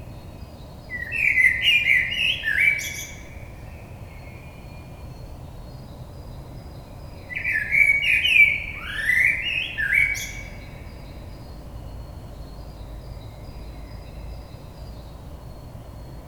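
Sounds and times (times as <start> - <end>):
blackbird: 0.9 - 4.6, 7.2 - 11.2.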